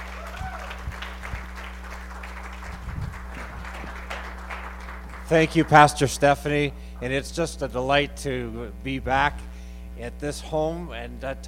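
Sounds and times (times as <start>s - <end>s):
audience applause welcoming a guest pastor at a morning church service: 0.0s - 6.1s
low constant hum: 0.0s - 11.4s
speech: 5.3s - 9.4s, 10.0s - 11.4s.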